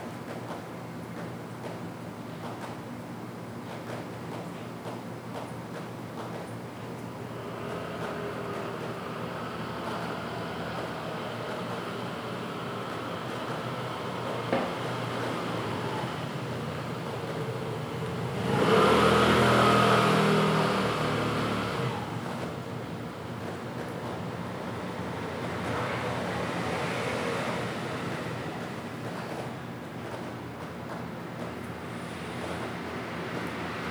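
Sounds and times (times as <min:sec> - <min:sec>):
low city hum at night in PingTung Taiwan: 0:07.0 - 0:33.9
vehicle passing: 0:07.4 - 0:29.5.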